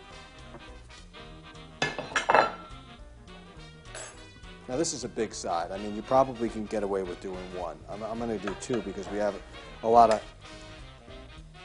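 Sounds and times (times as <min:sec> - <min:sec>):
ceramic plate clinking while plating enchiladas: 0:01.8 - 0:02.8
speech: 0:04.7 - 0:10.3.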